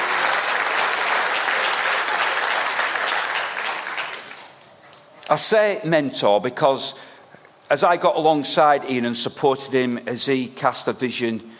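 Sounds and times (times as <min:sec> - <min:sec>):
audience round of applause: 0:00.0 - 0:04.7
speech: 0:05.3 - 0:07.1, 0:07.7 - 0:11.5.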